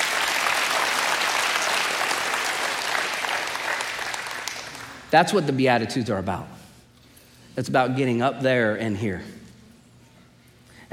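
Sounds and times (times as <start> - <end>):
audience clapping: 0.0 - 5.1
speech: 5.1 - 6.6, 7.6 - 9.4.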